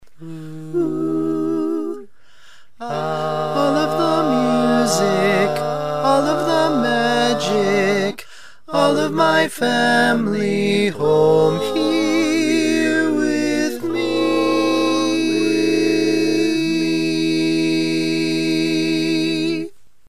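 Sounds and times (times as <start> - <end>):
barbershop tags sung by all parts: 0.2 - 2.1, 2.8 - 19.8.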